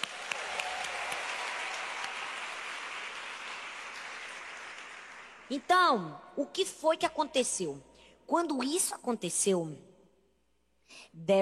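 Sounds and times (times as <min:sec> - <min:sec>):
crowd applauding: 0:00.0 - 0:05.5
speech: 0:05.5 - 0:09.9, 0:10.9 - 0:11.4.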